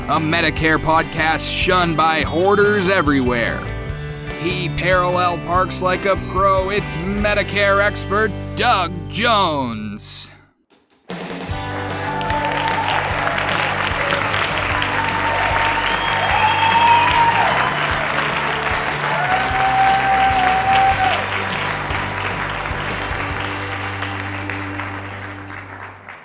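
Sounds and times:
speech: 0.1s - 3.7s, 4.4s - 10.4s
audience applause: 11.6s - 26.2s.

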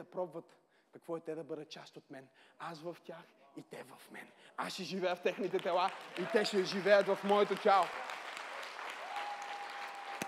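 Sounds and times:
speech: 0.0s - 8.2s
audience applause: 5.5s - 10.2s.

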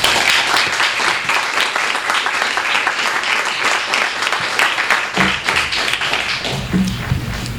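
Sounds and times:
crowd applauding: 0.0s - 7.5s
low thumps: 6.3s - 7.5s.

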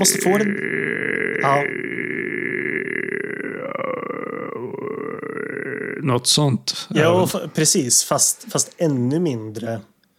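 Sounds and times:
speech: 0.0s - 1.8s, 6.0s - 9.9s
voice imitating a creaking croak in the throat: 0.0s - 6.3s.

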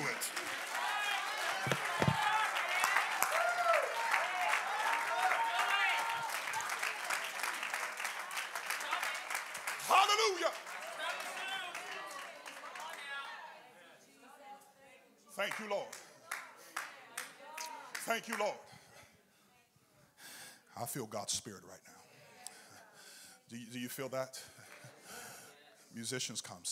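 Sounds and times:
audience clapping hands: 0.0s - 13.4s, 15.4s - 18.5s
speech: 1.6s - 1.8s, 18.2s - 18.7s, 20.8s - 21.9s, 23.5s - 24.6s, 26.0s - 26.7s.

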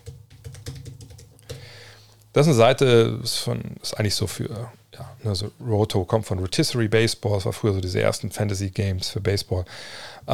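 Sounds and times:
rapid typing of a website address on a computer keyboard: 0.0s - 1.7s
speech: 2.3s - 10.3s.

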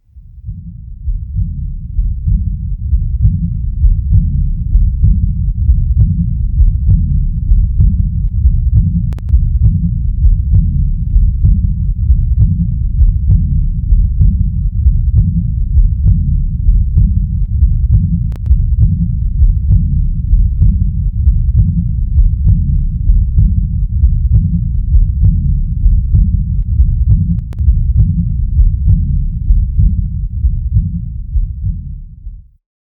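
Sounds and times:
heartbeats heard through a stethoscope: 0.0s - 32.6s.

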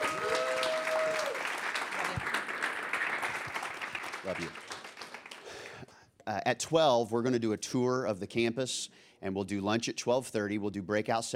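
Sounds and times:
church congregation applauding to welcome a pastor at a morning service: 0.0s - 5.8s
speech: 4.2s - 4.6s, 6.3s - 11.3s.

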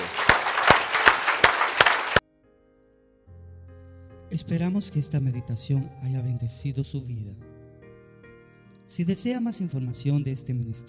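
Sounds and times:
audience applause: 0.0s - 2.2s
speech: 4.4s - 7.5s, 8.9s - 10.8s.

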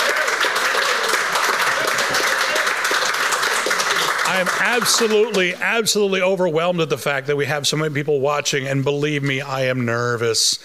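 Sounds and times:
crowd applauding: 0.0s - 6.0s
speech: 4.4s - 10.6s.

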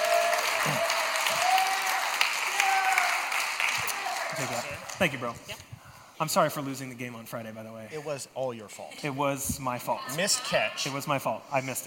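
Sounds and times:
audience applause: 0.0s - 5.3s
speech: 4.4s - 11.8s.

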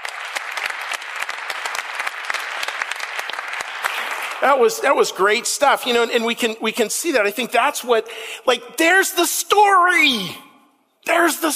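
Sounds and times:
audience applause: 0.0s - 4.6s
speech: 4.4s - 10.5s, 11.1s - 11.5s.

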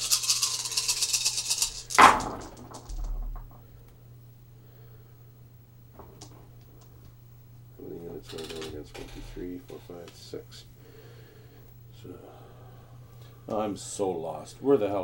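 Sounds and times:
dice rolled for a Shogun board game: 0.0s - 3.6s
low steady hum: 0.0s - 15.0s
speech: 9.5s - 10.7s, 13.5s - 15.0s.

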